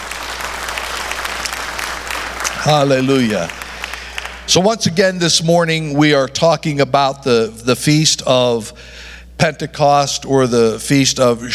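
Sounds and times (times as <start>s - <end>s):
church congregation clapping in applause: 0.0s - 4.8s
speech: 2.6s - 3.6s, 4.5s - 11.5s.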